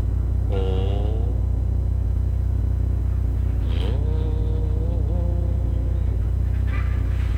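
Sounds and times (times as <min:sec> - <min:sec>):
generator set humming: 0:00.0 - 0:07.3
wavering honk-like tonal calls: 0:00.5 - 0:01.5, 0:03.5 - 0:07.3.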